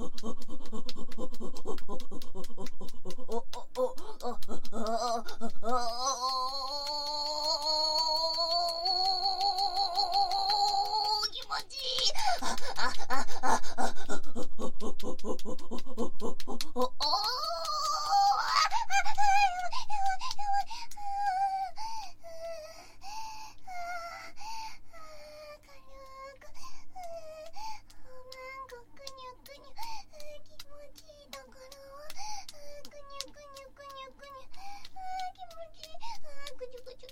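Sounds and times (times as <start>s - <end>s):
person moaning: 0.0s - 25.2s.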